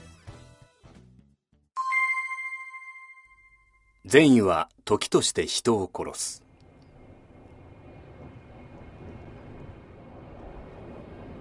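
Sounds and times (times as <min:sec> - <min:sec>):
speech: 0:04.1 - 0:06.4
airliner approaching to land at Narita airport: 0:06.5 - 0:11.4.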